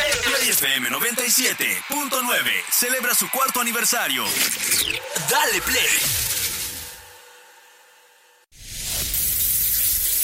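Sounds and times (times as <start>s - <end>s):
speech: 0.6s - 6.3s
shower water spraying: 9.0s - 10.2s.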